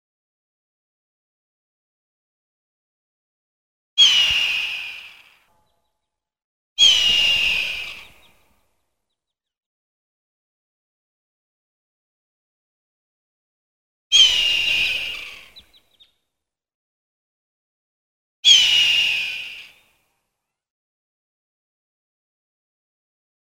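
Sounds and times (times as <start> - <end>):
hawk giving a raspy drawn-out scream: 4.0 - 5.4, 6.8 - 8.3, 14.1 - 15.8, 18.4 - 19.8.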